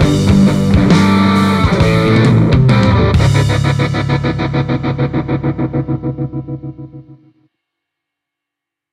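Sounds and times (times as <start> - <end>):
Stratocaster electric guitar through Celestion Vintage 30 speaker: 0.0 - 7.4.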